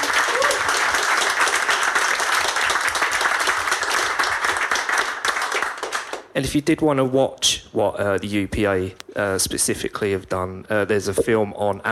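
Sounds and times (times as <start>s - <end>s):
audience applause: 0.0s - 6.2s
speech: 6.4s - 11.8s.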